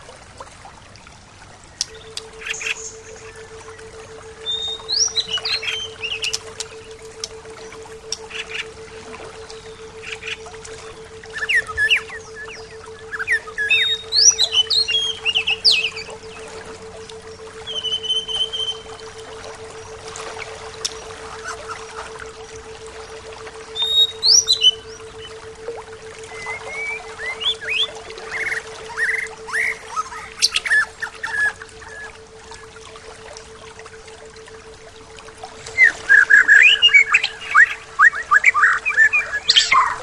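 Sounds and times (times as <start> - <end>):
steady low hum: 0.0 - 40.0
bird chirps and whistled slurs: 4.4 - 8.7, 11.2 - 16.5, 17.3 - 19.0, 23.7 - 25.3, 26.2 - 32.1, 35.8 - 40.0.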